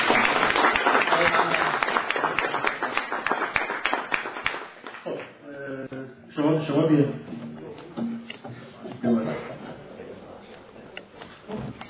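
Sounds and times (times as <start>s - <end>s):
audience applause: 0.0s - 5.1s
speech: 6.8s - 7.2s.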